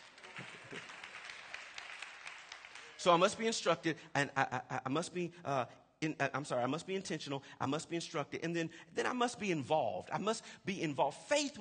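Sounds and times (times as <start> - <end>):
audience clapping: 0.0 - 3.8
speech: 3.0 - 11.5.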